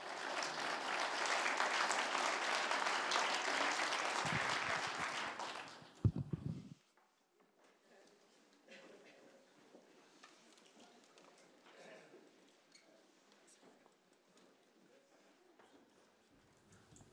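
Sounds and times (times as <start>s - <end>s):
audience applause: 0.0s - 6.6s.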